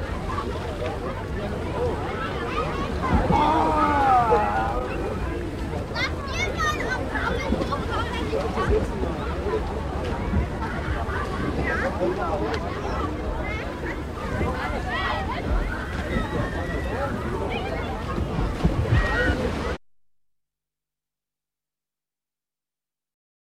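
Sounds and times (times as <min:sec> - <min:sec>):
outdoor swimming pool ambience: 0:00.0 - 0:19.8.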